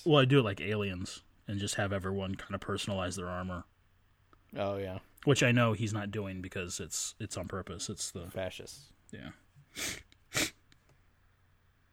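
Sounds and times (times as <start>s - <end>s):
speech: 0.0s - 3.7s, 4.5s - 10.1s
sniffling: 9.6s - 10.7s.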